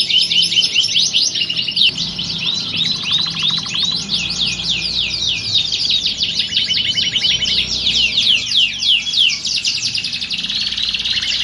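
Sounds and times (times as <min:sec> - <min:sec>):
Belgian canary trilling song: 0:00.0 - 0:11.4
low pulsed rattle: 0:01.6 - 0:11.4.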